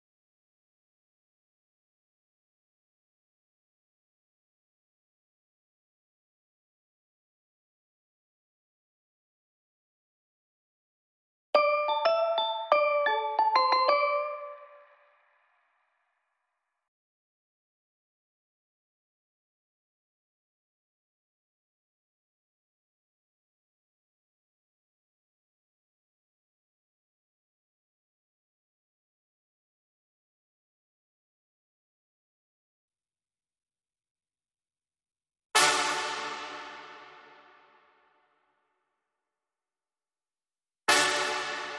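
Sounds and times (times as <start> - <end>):
bells: 11.6 - 15.2
brass instruments: 35.6 - 37.7, 40.9 - 41.7.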